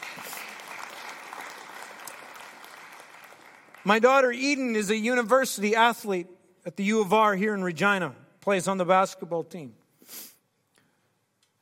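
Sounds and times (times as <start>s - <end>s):
audience applause: 0.0s - 4.1s
speech: 3.8s - 10.3s.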